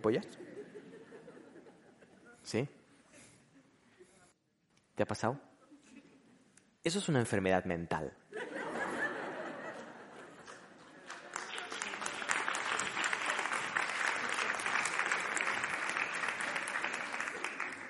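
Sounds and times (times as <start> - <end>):
speech: 0.0 - 0.5, 2.4 - 2.8, 5.0 - 5.5, 6.8 - 8.5
laughter: 0.2 - 2.4, 8.3 - 17.8
audience applause: 10.4 - 17.8.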